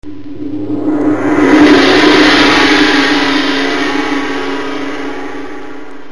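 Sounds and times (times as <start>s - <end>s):
gong: 0.1s - 6.1s.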